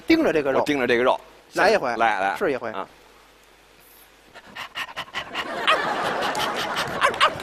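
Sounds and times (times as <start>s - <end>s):
speech: 0.1s - 3.0s
man imitating a dog panting and yelping in a Pavlov experiment sketch: 4.4s - 5.5s
laughter: 5.2s - 7.4s.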